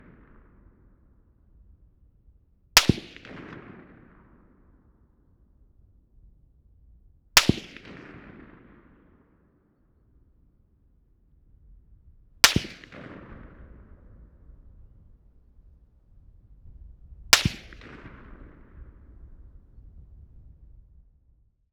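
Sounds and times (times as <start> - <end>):
Mosin-Nagant rifle shots 50m distant: 2.8 - 4.7, 7.4 - 9.3, 12.4 - 13.9, 17.4 - 18.9.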